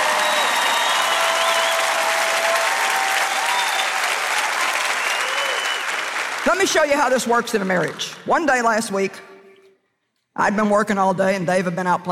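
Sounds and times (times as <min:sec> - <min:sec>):
audience clapping: 0:00.0 - 0:09.1
speech: 0:06.5 - 0:09.3, 0:10.4 - 0:12.0.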